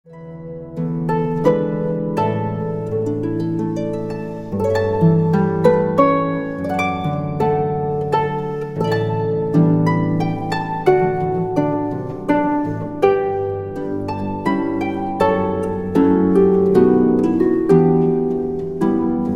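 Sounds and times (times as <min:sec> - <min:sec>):
harp playing a hymn: 0:00.0 - 0:19.3.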